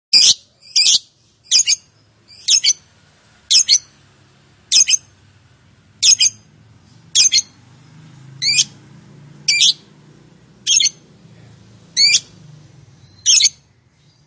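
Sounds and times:
lovebird giving sharp high chirps in konslet calling style: 0:00.2 - 0:04.0, 0:04.7 - 0:05.2, 0:06.0 - 0:08.8, 0:09.4 - 0:10.0, 0:10.6 - 0:11.0, 0:11.9 - 0:14.2.

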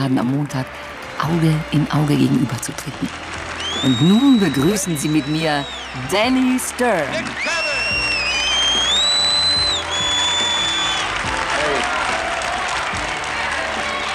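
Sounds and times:
speech: 0:00.0 - 0:07.6
boxing crowd clapping at Madison Square Garden: 0:00.0 - 0:14.1
crowd whistling: 0:03.1 - 0:14.1.

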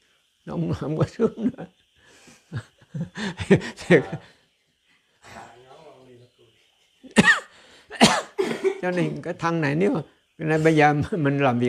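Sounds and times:
speech: 0:00.4 - 0:01.8, 0:02.5 - 0:04.4, 0:08.8 - 0:11.6
coughing: 0:07.0 - 0:09.3.

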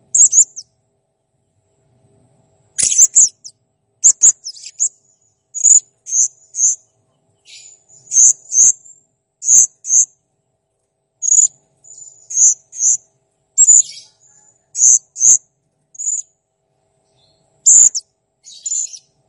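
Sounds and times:
Blue-crowned hanging parrot chirping: 0:00.2 - 0:00.7, 0:02.8 - 0:04.9, 0:05.6 - 0:06.8, 0:07.5 - 0:08.7, 0:09.5 - 0:10.1, 0:11.3 - 0:13.0, 0:13.6 - 0:15.4, 0:16.0 - 0:16.3, 0:17.7 - 0:19.1.

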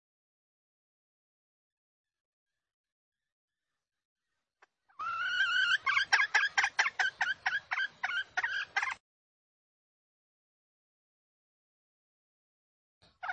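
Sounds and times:
female junglefowl squawking lure call: 0:04.9 - 0:09.0, 0:13.2 - 0:13.3.

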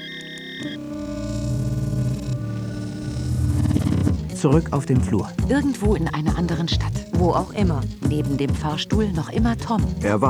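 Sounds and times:
mobile phone ringing tone: 0:00.0 - 0:04.0
speech: 0:00.6 - 0:01.2, 0:04.4 - 0:10.2.

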